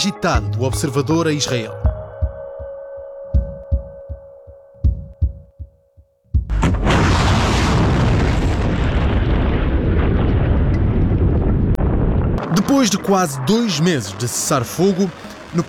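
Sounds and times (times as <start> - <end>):
speech: 0.0 - 1.9, 12.7 - 15.6
low thumps: 6.4 - 12.6
missile explosions in the sky: 6.5 - 15.6
steady hum: 12.4 - 15.6.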